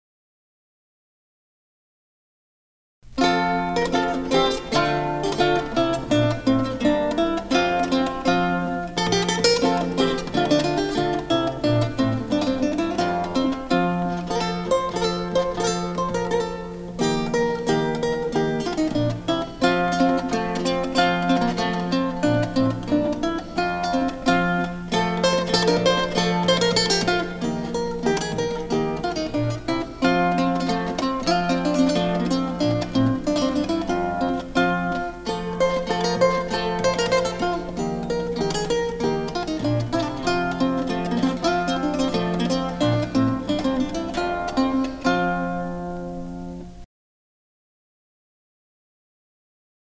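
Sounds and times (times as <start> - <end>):
consort music jig: 3.0 - 46.8.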